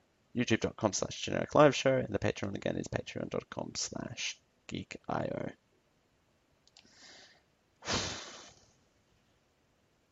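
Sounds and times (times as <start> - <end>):
speech: 0.4 - 5.6, 7.8 - 8.2
small clicks: 6.6 - 6.9.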